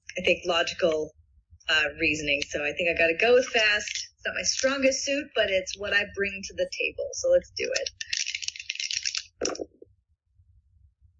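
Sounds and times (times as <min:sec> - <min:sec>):
speech: 0:00.2 - 0:08.2, 0:09.4 - 0:09.7
dice being rolled: 0:07.8 - 0:09.7.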